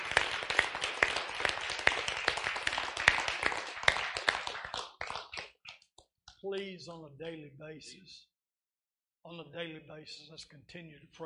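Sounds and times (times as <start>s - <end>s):
audience clapping hands: 0.0s - 6.7s
speech: 6.4s - 8.3s, 9.2s - 11.2s.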